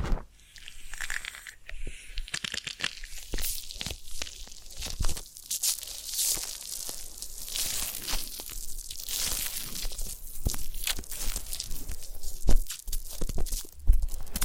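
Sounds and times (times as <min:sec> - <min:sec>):
quick clicks and crackles: 0:00.0 - 0:07.0, 0:09.9 - 0:14.4
ear cleaning and massage crinkling scratches and rubbing: 0:00.0 - 0:14.4.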